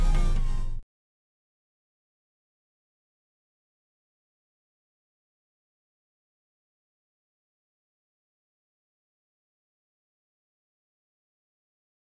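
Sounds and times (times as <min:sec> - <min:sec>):
party synth: 0:00.0 - 0:00.8.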